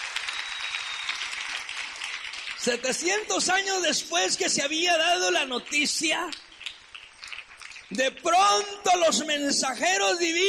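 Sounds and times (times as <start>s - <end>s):
audience applause: 0.0s - 2.8s
speech: 2.6s - 6.4s, 8.0s - 10.4s.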